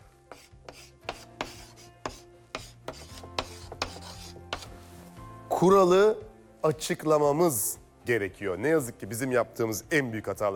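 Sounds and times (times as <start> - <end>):
pen scratching on paper: 0.3 - 4.7
speech: 5.6 - 10.5.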